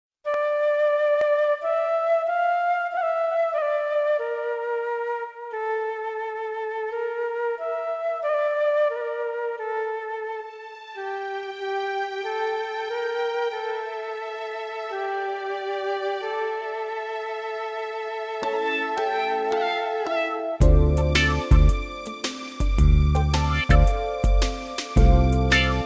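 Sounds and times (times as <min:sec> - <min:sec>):
Japanese flute: 0:00.3 - 0:17.6, 0:18.4 - 0:25.8.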